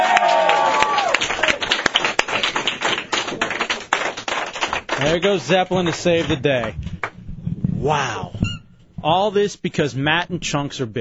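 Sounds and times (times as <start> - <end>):
audience applause and cheering: 0.0 - 7.2
speech: 5.0 - 6.9, 7.8 - 8.4, 9.0 - 11.0.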